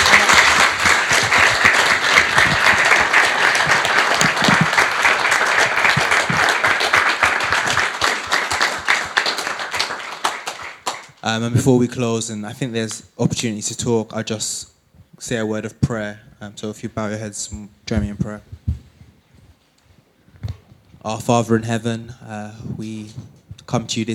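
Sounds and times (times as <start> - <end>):
audience round of applause: 0.0 - 11.2
speech: 11.3 - 18.7, 21.0 - 24.1.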